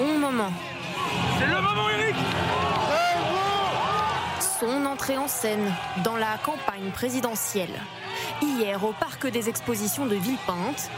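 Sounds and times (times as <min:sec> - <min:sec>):
crowd cheering and chanting for candidate at rally: 0:00.0 - 0:10.9
speech: 0:00.4 - 0:00.8, 0:04.6 - 0:10.9.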